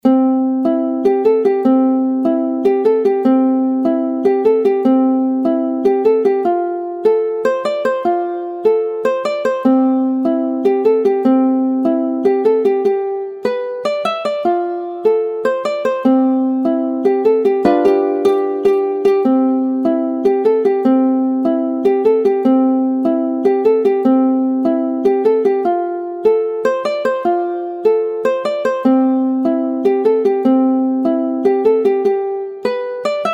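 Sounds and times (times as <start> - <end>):
ukulele playing rock and roll exercise: 0.0 - 33.3.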